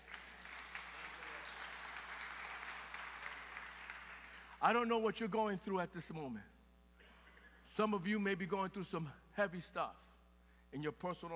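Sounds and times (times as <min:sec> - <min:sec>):
audience applause: 0:00.0 - 0:04.6
speech: 0:04.6 - 0:06.6, 0:07.8 - 0:10.0, 0:10.7 - 0:11.3.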